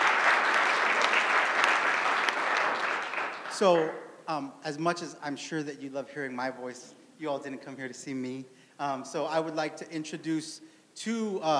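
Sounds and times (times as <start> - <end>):
audience applause: 0.0 - 4.0
speech: 3.6 - 11.5.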